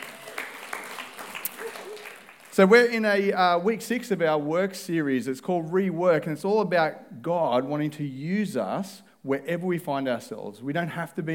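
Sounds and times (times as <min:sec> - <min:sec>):
audience round of applause: 0:00.0 - 0:02.7
speech: 0:02.6 - 0:11.3.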